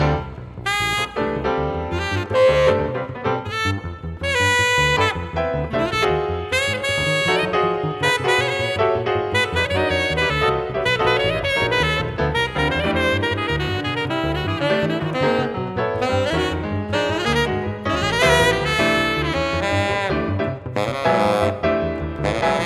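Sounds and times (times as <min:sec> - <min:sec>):
piano: 0:00.0 - 0:22.6
saxophone: 0:00.0 - 0:22.6.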